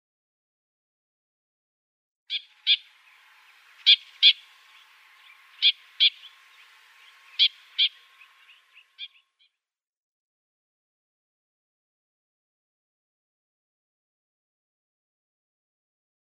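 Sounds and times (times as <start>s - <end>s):
Trumpeter finch calls: 2.3s - 9.6s.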